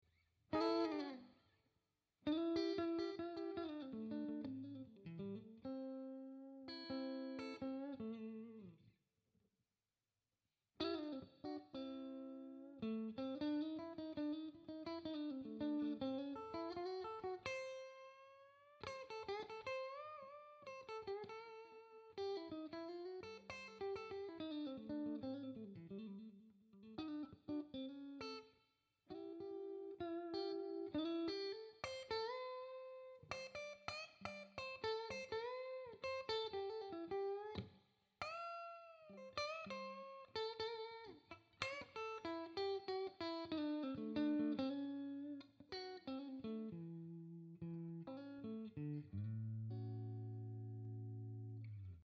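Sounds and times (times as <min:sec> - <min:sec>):
blues guitar solo with triplet feel: 0:00.5 - 0:01.4, 0:02.2 - 0:08.9, 0:10.8 - 0:28.5, 0:29.1 - 0:52.0.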